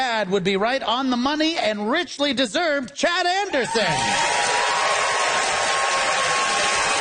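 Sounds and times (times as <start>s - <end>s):
speech: 0.2s - 4.5s
audience applause: 3.9s - 7.0s.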